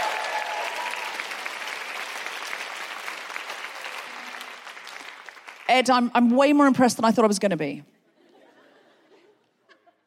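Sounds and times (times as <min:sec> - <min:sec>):
audience applause: 0:00.0 - 0:05.7
speech: 0:05.7 - 0:07.9
laughter: 0:08.2 - 0:10.0.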